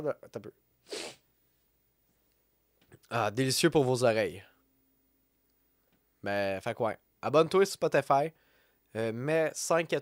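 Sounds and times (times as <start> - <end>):
speech: 0.0 - 1.2, 3.1 - 4.5, 6.2 - 10.0
nose sniff: 0.8 - 1.2.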